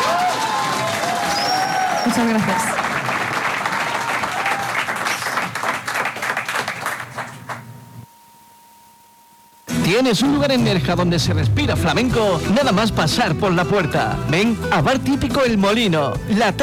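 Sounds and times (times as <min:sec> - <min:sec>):
audience applause: 0:00.0 - 0:07.7
speech: 0:02.0 - 0:02.8, 0:09.9 - 0:16.6.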